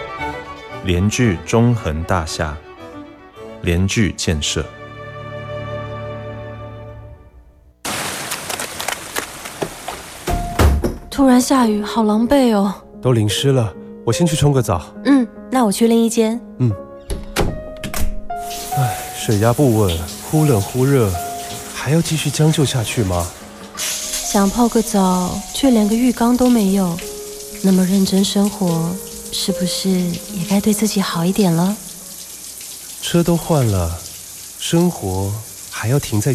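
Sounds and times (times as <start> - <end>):
speech: 0.8 - 2.7, 3.6 - 4.8, 11.2 - 16.9, 19.3 - 21.2, 21.8 - 23.4, 24.3 - 31.8, 33.1 - 34.0, 34.6 - 36.3
shower water running: 7.9 - 10.6, 18.4 - 36.3.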